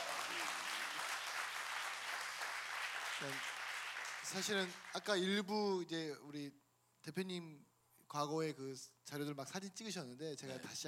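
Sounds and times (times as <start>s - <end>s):
audience applause: 0.0s - 5.2s
speech: 3.2s - 3.5s, 4.3s - 10.8s.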